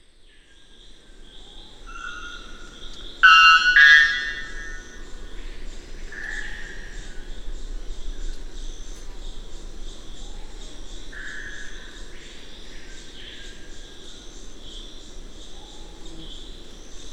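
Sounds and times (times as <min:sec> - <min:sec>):
white bellbird Procneas albus bell-like song: 0:03.2 - 0:04.8.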